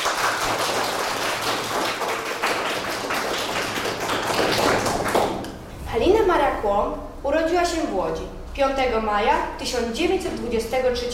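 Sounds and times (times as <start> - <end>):
audience applause: 0.0 - 5.5
speech: 6.7 - 11.1.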